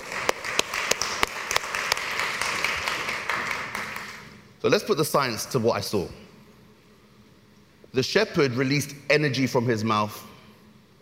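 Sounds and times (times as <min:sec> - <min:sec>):
audience applause during a church sermon: 0:00.0 - 0:04.3
speech: 0:04.6 - 0:06.2, 0:07.9 - 0:10.3.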